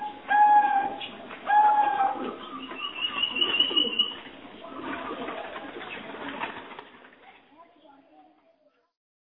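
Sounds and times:
spotted dove lure call cooing: 0.0 - 6.4.

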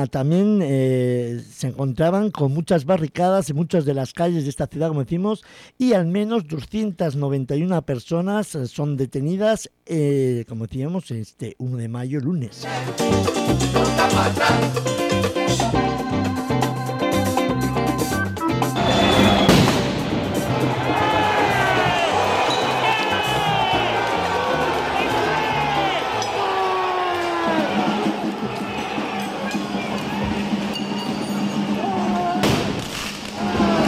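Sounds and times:
speech: 0.0 - 16.4
rhythmic drumbeats: 12.7 - 33.8
protest crowd shouting and chanting in Paris streets: 20.2 - 32.5, 33.3 - 33.8.

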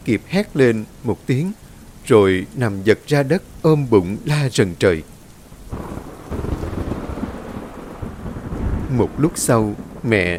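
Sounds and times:
speech: 0.0 - 5.1, 8.9 - 10.3
steady heavy rain: 0.0 - 10.3
deep rumbling thunder: 5.7 - 10.3.

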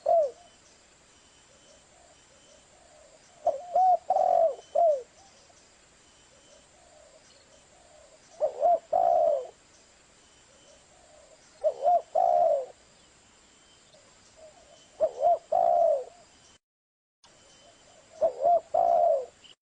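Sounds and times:
spotted dove cooing: 0.0 - 0.5, 1.5 - 5.3, 6.3 - 9.6, 10.5 - 12.8, 14.4 - 16.2, 17.7 - 19.5.

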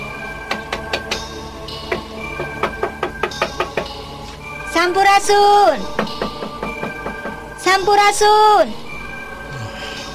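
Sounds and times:
knocking on a door: 1.9 - 3.9, 5.9 - 7.5
speech: 4.8 - 6.2, 7.7 - 8.8.

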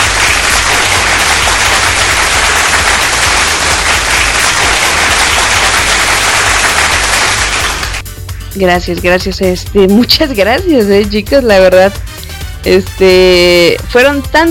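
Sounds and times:
applause: 0.0 - 8.0
speech: 8.6 - 14.5.

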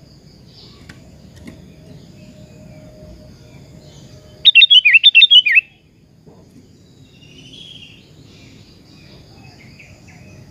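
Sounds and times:
sooty-headed bulbul whistled song: 2.2 - 5.8, 7.1 - 8.0.

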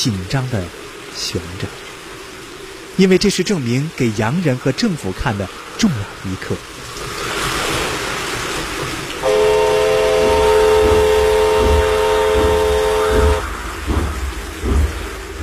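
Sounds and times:
speech: 0.0 - 1.9, 3.0 - 7.2
steady hissing rain: 0.0 - 15.4
train rumbling slowly: 8.5 - 15.4
train horn chord-like blast: 9.2 - 13.5.

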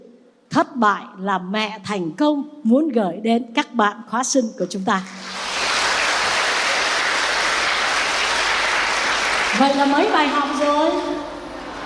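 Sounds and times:
speech: 0.6 - 5.4, 9.6 - 11.2
audience applause: 5.1 - 10.9.

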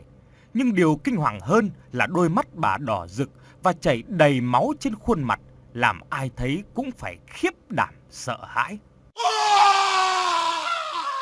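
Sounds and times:
speech: 0.5 - 9.3
man's terrified scream: 9.2 - 11.2.

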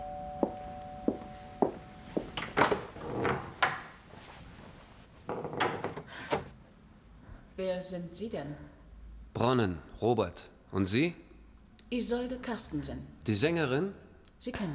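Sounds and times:
scraping and shuffling movement: 0.5 - 5.6
door being opened: 2.3 - 4.0, 5.3 - 6.6
speech: 7.6 - 8.7, 9.4 - 11.2, 11.9 - 14.7.

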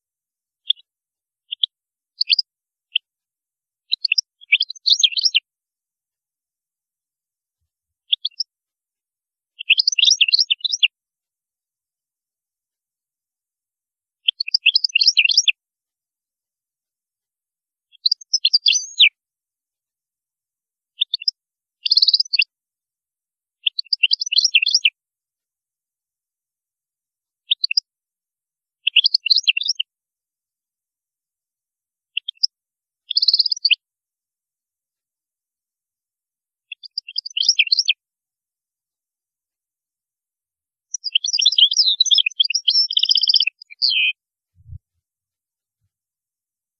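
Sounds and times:
European goldfinch song: 0.6 - 3.1, 3.8 - 5.5, 7.6 - 8.6, 9.5 - 11.0, 14.2 - 15.6, 17.8 - 19.2, 21.0 - 22.5, 23.6 - 25.0, 27.4 - 27.9, 28.7 - 29.9, 32.1 - 33.8, 36.6 - 38.0, 40.8 - 44.8.

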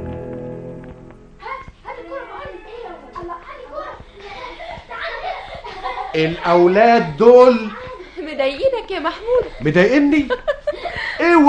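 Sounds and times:
children laughing, shouting and chattering in their father's house: 1.4 - 11.4
speech: 6.2 - 7.8, 8.5 - 10.4, 11.2 - 11.4.

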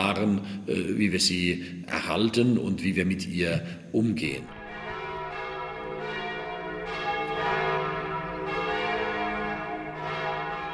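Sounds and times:
speech: 0.0 - 4.6
massive church bells of the Basilica of St. Francis pealing: 4.5 - 10.7.

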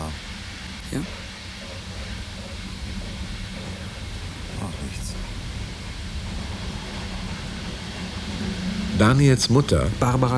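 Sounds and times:
moving express train compartment between Hannover and Göttingen: 0.0 - 10.3
speech: 0.9 - 1.3, 9.0 - 10.3.

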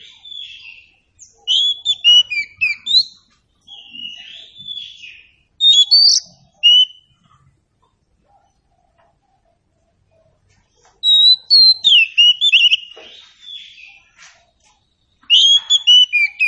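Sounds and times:
Oriental Magpie-Robin song: 0.0 - 7.3, 10.6 - 16.4.

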